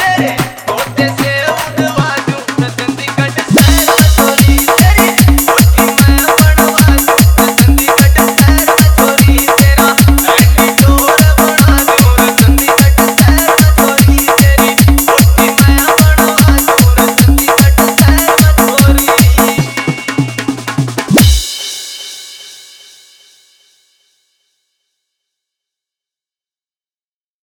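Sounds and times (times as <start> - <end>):
desi bass dance mix: 0.0 - 21.5.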